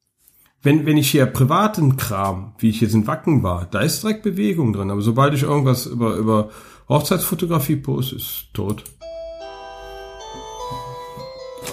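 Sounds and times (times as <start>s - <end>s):
speech: 0.6s - 9.1s
standard office desk phone ringing with electronic trill: 9.0s - 11.7s.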